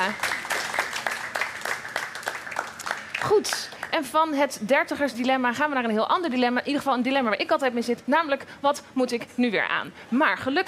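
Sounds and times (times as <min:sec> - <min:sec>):
speech: 0:00.0 - 0:00.3, 0:03.2 - 0:10.6
applause: 0:00.0 - 0:04.4.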